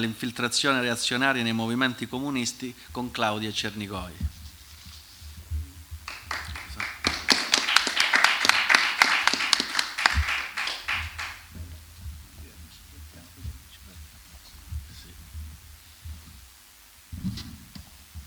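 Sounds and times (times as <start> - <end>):
speech: 0.0 - 4.4
low hum: 0.0 - 18.2
audience applause: 6.0 - 11.6.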